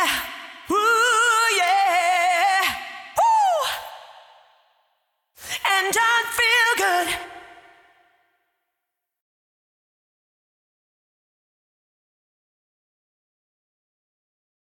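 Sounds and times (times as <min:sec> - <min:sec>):
person singing: 0:00.0 - 0:04.5, 0:05.4 - 0:08.2.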